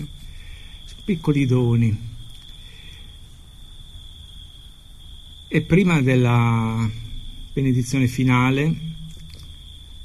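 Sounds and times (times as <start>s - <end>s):
crickets chirping: 0.0s - 10.0s
low hum: 0.0s - 10.0s
speech: 1.1s - 2.1s, 5.5s - 7.0s, 7.6s - 9.0s.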